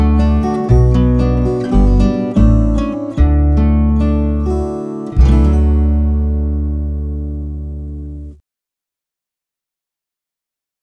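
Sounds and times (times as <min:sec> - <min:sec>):
instrumental music: 0:00.0 - 0:08.4.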